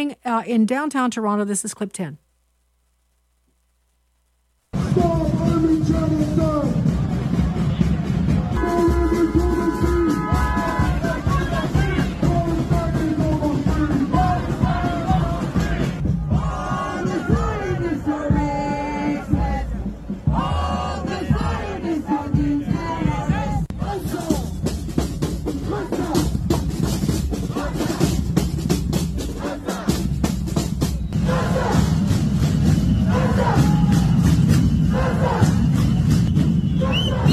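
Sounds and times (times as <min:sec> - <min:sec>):
speech: 0:00.0 - 0:02.2
large crowd of Hamas supporters shouting and chanting in a downtown Toronto street: 0:04.8 - 0:26.6, 0:27.3 - 0:37.3.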